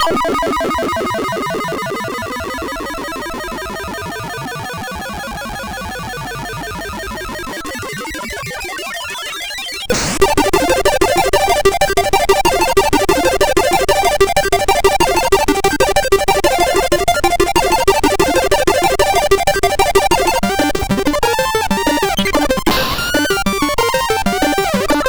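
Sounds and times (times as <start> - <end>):
chiptune waltz on MOS6581R2 chip: 0.0 - 4.4, 9.9 - 25.0.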